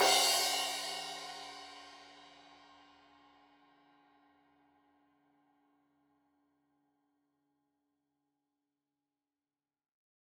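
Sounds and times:
15 inch crash cymbal edge hit: 0.0 - 2.2.

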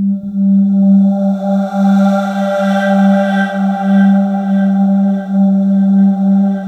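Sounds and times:
atmosphere: 0.0 - 6.6.

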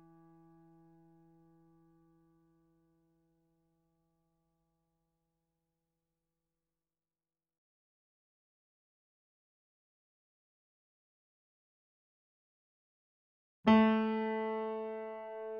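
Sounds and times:
sample piano: 13.7 - 15.5.

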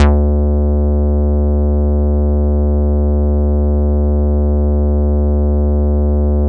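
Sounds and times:
bass: 0.0 - 6.4.

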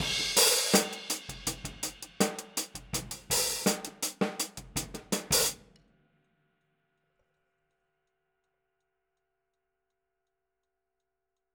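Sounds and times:
boogaloo outro hi-hat: 0.0 - 5.6
boogaloo outro drums: 0.0 - 5.9.

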